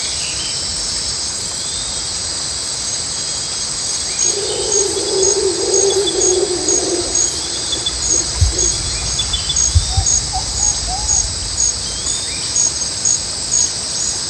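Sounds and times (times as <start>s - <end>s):
jungle ambience: 4.0s - 14.0s.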